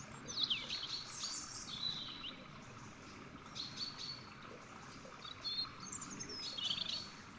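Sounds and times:
European robin Erithacus rubecula singing: 0:00.0 - 0:02.4, 0:03.4 - 0:04.3, 0:04.9 - 0:07.2.

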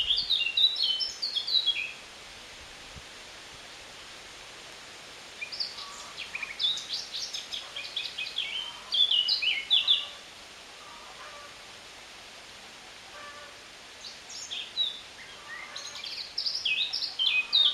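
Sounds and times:
Eurasian blackcap Sylvia atricapilla warbling song: 0:00.0 - 0:02.0, 0:05.4 - 0:10.2, 0:14.0 - 0:17.7.

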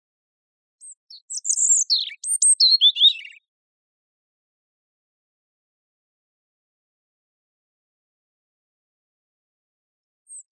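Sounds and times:
European robin song: 0:00.8 - 0:03.5, 0:10.3 - 0:10.5.

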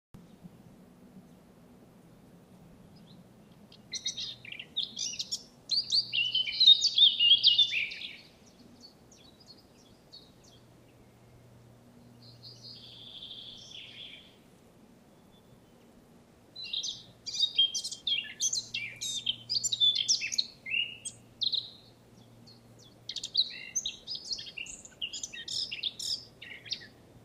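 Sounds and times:
Eurasian blackcap song: 0:02.8 - 0:11.4, 0:12.0 - 0:14.4, 0:16.6 - 0:27.2.

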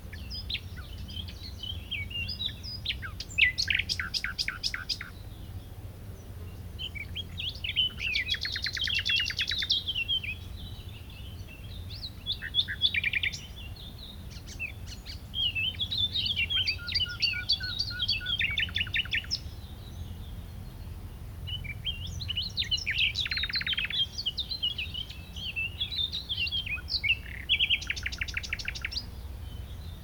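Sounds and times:
Common nightingale song: 0:00.0 - 0:30.0.

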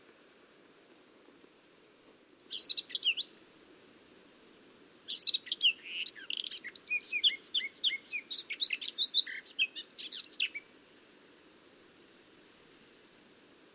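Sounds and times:
Eurasian blackcap song: 0:02.5 - 0:03.4, 0:04.5 - 0:10.6.

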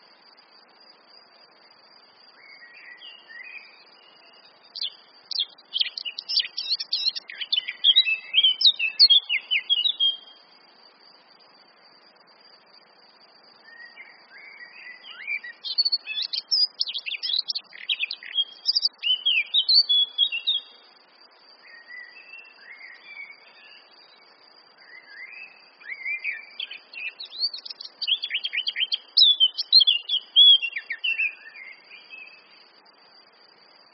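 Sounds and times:
light background noise: 0:00.0 - 0:33.9
Eurasian blackcap warbling song: 0:02.4 - 0:10.4, 0:13.6 - 0:32.5.

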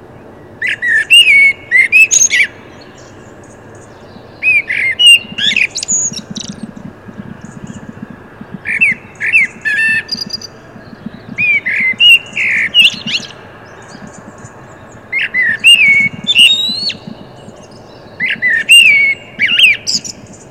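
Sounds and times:
common blackbird Turdus merula singing: 0:00.0 - 0:20.4.

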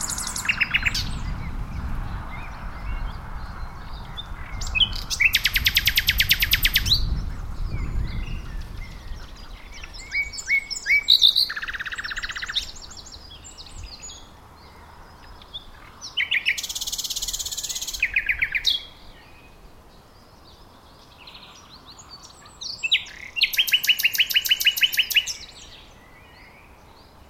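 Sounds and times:
low rumbling noise: 0:00.0 - 0:10.0
common nightingale singing: 0:00.0 - 0:27.2.

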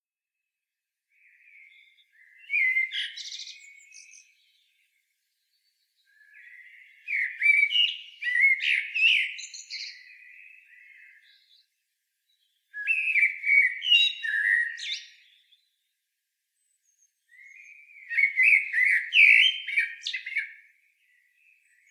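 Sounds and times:
Eurasian blackbird singing fluty warbling: 0:01.1 - 0:21.8.

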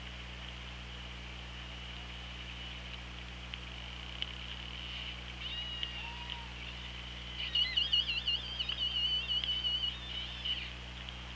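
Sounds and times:
steady low underwater hum: 0:00.0 - 0:11.3
orca whistle: 0:05.4 - 0:10.8.

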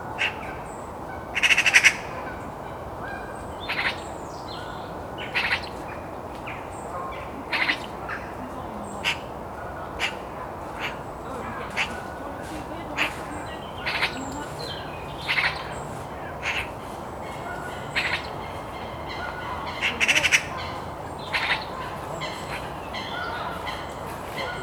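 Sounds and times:
other birds calling: 0:00.2 - 0:24.6
Eurasian magpie rattling chatter: 0:10.0 - 0:24.6.

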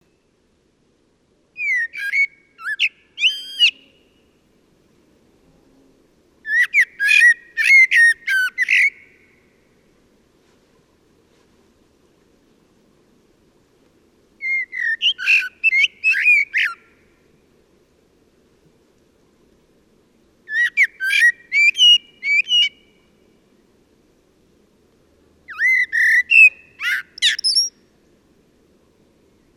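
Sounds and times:
common blackbird singing: 0:01.6 - 0:04.2, 0:06.4 - 0:09.2, 0:14.4 - 0:16.9, 0:20.5 - 0:23.0, 0:25.5 - 0:27.8.

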